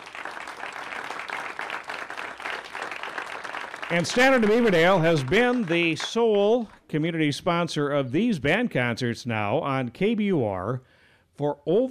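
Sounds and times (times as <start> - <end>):
audience applause: 0.0 - 6.8
speech: 3.9 - 11.8.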